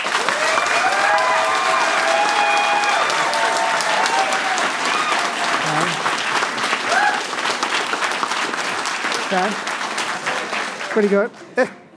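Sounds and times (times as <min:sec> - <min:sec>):
audience applause: 0:00.0 - 0:11.8
speech: 0:09.3 - 0:09.7, 0:10.9 - 0:11.8.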